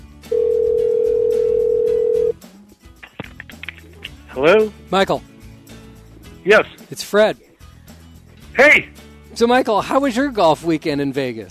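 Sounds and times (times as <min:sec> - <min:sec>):
telephone call ringing: 0:00.3 - 0:02.4
speech: 0:04.4 - 0:05.3, 0:06.4 - 0:07.5, 0:08.6 - 0:11.4.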